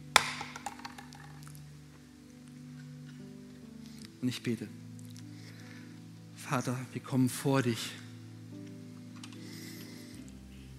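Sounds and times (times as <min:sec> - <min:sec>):
hammer dropping: 0:00.2 - 0:01.4
speech: 0:04.2 - 0:04.8, 0:06.5 - 0:08.0.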